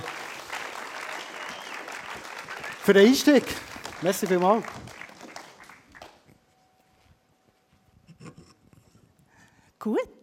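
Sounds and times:
audience applause: 0:00.0 - 0:06.3
speech: 0:02.9 - 0:04.8.

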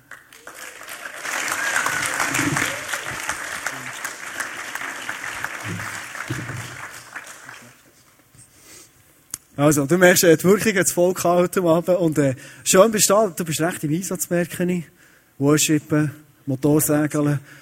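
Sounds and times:
crowd applauding: 0:00.0 - 0:08.0
speech: 0:09.6 - 0:17.5.

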